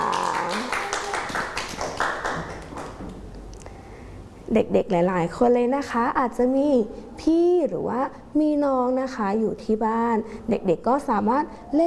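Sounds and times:
audience clapping for a child: 0.0s - 3.0s
speech: 4.5s - 11.8s.

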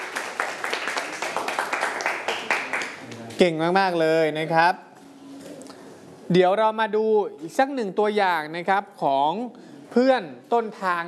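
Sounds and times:
group clapping: 0.0s - 3.4s
speech: 3.4s - 4.9s, 6.3s - 11.0s.

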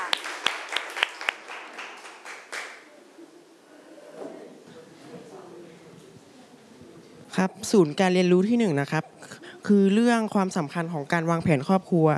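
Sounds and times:
students applauding a classmate: 0.0s - 2.9s
speech: 7.4s - 12.1s.

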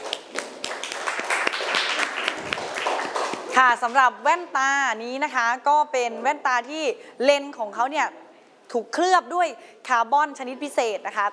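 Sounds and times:
audience applause: 0.0s - 3.5s
speech: 3.6s - 11.3s.

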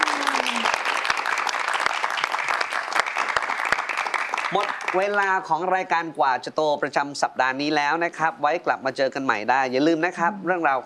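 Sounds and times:
audience applause: 0.0s - 5.4s
speech: 4.5s - 10.8s.

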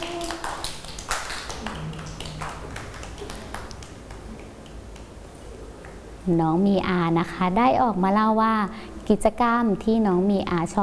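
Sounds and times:
children clapping: 0.0s - 5.2s
speech: 6.3s - 10.8s.

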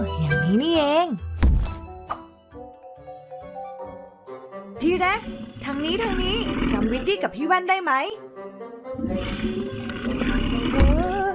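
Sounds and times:
speech: 0.5s - 1.3s, 4.9s - 8.3s, 9.0s - 11.0s
cartoon T. rex roaring: 4.9s - 7.2s, 9.0s - 11.3s.

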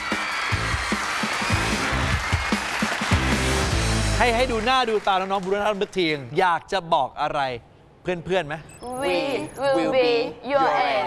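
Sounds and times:
loud applause welcoming students: 0.0s - 5.8s
speech: 4.2s - 11.0s.

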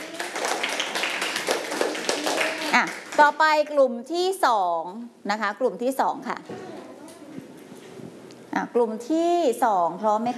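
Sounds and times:
children clapping hands: 0.0s - 3.3s
speech: 2.8s - 6.7s, 8.6s - 10.3s.

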